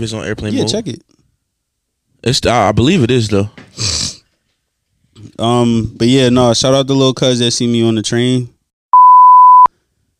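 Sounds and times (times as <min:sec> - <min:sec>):
speech: 0:00.0 - 0:01.2, 0:02.2 - 0:04.0, 0:05.2 - 0:08.6
recorder beep when recording starts: 0:09.0 - 0:09.7.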